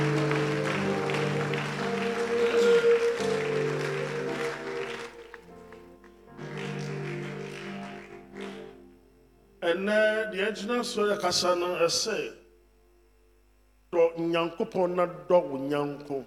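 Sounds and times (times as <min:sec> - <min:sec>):
audience clapping: 0:00.0 - 0:08.8
speech: 0:09.8 - 0:12.4, 0:14.2 - 0:16.2.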